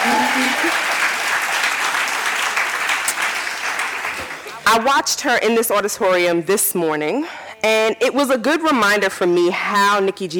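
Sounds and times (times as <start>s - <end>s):
audience clapping: 0.0s - 4.7s
speech: 4.7s - 10.3s.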